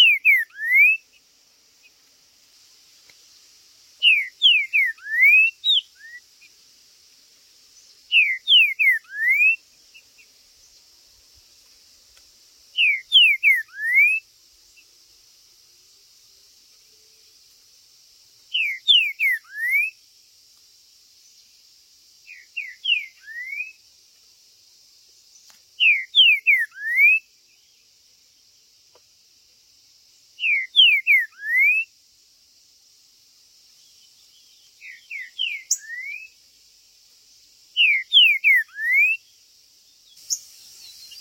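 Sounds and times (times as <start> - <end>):
green-winged saltator song: 0.0 - 1.2, 4.0 - 6.5, 7.8 - 10.3, 12.7 - 14.3, 18.5 - 20.0, 22.2 - 23.8, 25.8 - 27.8, 30.4 - 31.9, 33.8 - 36.4, 37.8 - 39.3, 40.0 - 41.1
steady high hiss: 0.0 - 41.1.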